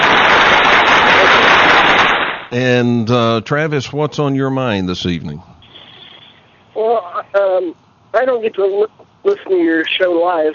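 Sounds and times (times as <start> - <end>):
applause: 0.0 - 2.5
speech: 2.5 - 5.6, 6.8 - 10.5.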